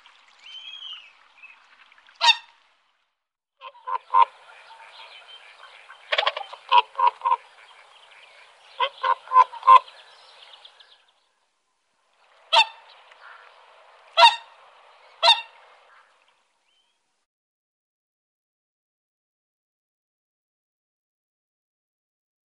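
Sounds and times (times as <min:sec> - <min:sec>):
whooper swan bugling honks: 0:02.2 - 0:02.6, 0:03.6 - 0:10.9, 0:12.3 - 0:16.2.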